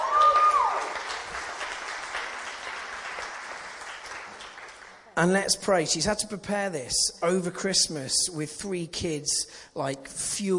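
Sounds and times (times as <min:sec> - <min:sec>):
audience applause: 0:00.0 - 0:05.2
speech: 0:05.2 - 0:10.5.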